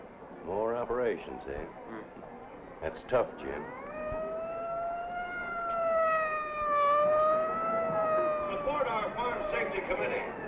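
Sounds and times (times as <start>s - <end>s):
speech: 0.4s - 3.8s
fire engine siren: 3.4s - 10.4s.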